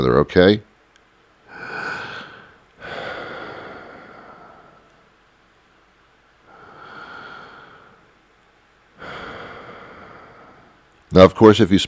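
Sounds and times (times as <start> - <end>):
speech: 0.0 - 0.7, 11.1 - 11.8
slow breathing: 1.5 - 5.2, 6.4 - 8.2, 8.9 - 10.9.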